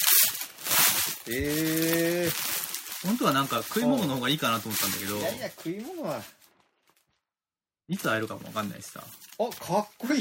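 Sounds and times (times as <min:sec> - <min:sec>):
plastic packaging around a T-shirt rustling: 0:00.0 - 0:07.2, 0:08.0 - 0:10.2
speech: 0:01.3 - 0:06.4, 0:07.9 - 0:10.2.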